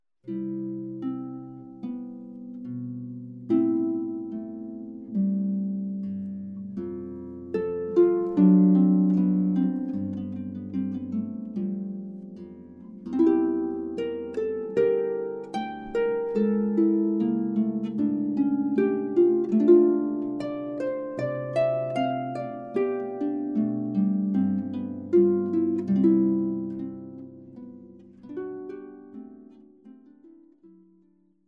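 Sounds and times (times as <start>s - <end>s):
harp piece: 0.2s - 31.2s.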